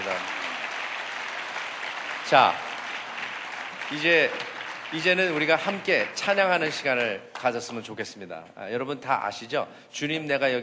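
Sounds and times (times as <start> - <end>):
audience applause: 0.0 - 7.8
speech: 2.3 - 2.6, 3.9 - 10.6.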